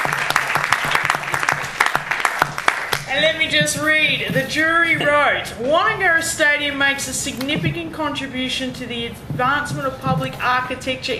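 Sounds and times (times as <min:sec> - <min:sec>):
audience applause: 0:00.0 - 0:03.1
speech: 0:03.2 - 0:11.1.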